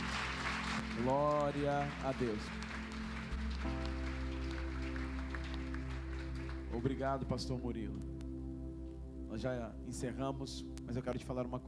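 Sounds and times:
audience applause: 0:00.0 - 0:07.0
speech: 0:01.0 - 0:02.6, 0:06.8 - 0:08.1, 0:09.3 - 0:11.6.

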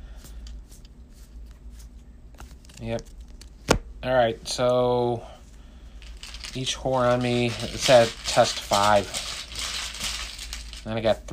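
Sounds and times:
low hum: 0:00.0 - 0:11.3
playing card drawn from a deck during a tabletop card game: 0:00.2 - 0:03.9, 0:06.0 - 0:11.3
speech: 0:02.8 - 0:03.2, 0:04.0 - 0:05.3, 0:06.5 - 0:09.3, 0:10.8 - 0:11.3.

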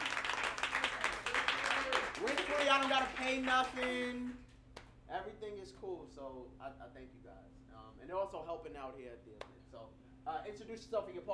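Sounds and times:
round of applause: 0:00.0 - 0:04.5
speech: 0:02.2 - 0:04.5, 0:05.1 - 0:11.3.

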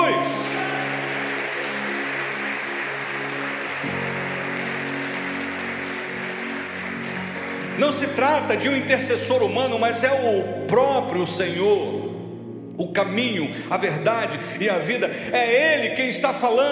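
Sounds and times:
audience applauding: 0:00.0 - 0:09.1
speech: 0:07.8 - 0:12.0, 0:12.8 - 0:16.7.

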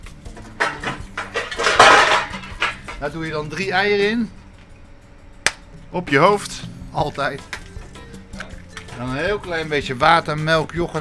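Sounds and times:
bowl grabbed from among kitchenware: 0:00.3 - 0:03.1
speech: 0:03.0 - 0:04.4, 0:05.9 - 0:07.6, 0:09.0 - 0:11.0.

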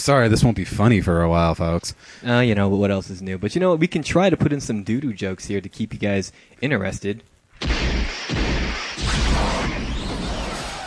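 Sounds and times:
speech: 0:00.0 - 0:07.7
1985 DeLorean crashing into podcast room: 0:09.0 - 0:10.8.

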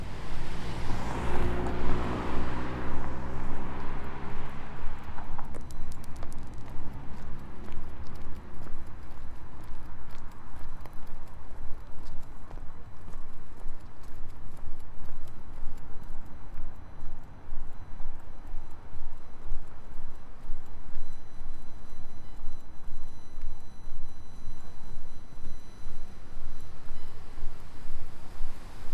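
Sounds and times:
loud vehicle engine passing on Nefelejcs street: 0:00.0 - 0:05.5, 0:06.1 - 0:09.1
steady dense traffic rumble on Nefelejcs street: 0:00.0 - 0:28.9.

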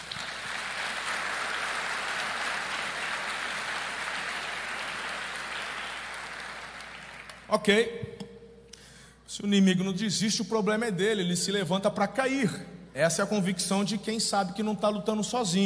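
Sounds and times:
audience applause: 0:00.0 - 0:07.5
speech: 0:07.5 - 0:08.1, 0:09.3 - 0:15.6.

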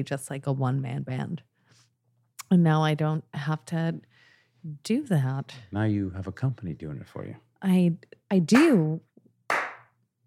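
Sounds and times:
speech: 0:00.0 - 0:01.5, 0:02.5 - 0:09.1
hand clap: 0:08.5 - 0:08.9, 0:09.5 - 0:10.0.

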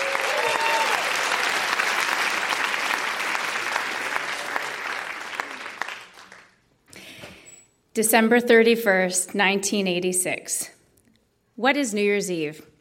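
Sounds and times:
audience at a Toronto stage show applauding: 0:00.0 - 0:06.6
speech: 0:08.0 - 0:10.8, 0:11.6 - 0:12.7.

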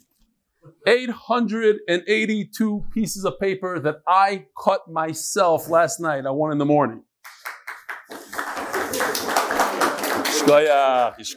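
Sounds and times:
speech: 0:00.8 - 0:07.1, 0:10.5 - 0:11.3
audience clapping: 0:07.2 - 0:11.3.

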